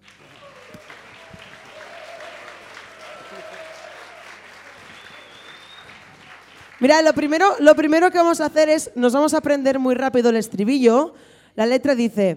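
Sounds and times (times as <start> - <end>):
audience applause at a live event: 0.0 - 7.2
speech: 6.8 - 12.3.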